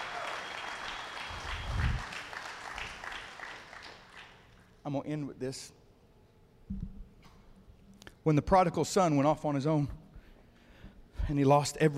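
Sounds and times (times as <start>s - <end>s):
large crowd clapping hands in praise: 0.0s - 4.6s
speech: 4.9s - 5.8s, 8.2s - 10.0s, 11.3s - 11.9s.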